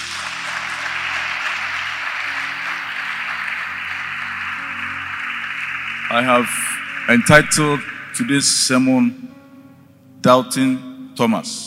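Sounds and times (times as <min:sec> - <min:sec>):
audience clapping: 0:00.0 - 0:09.3
speech: 0:06.1 - 0:09.4, 0:10.2 - 0:11.6.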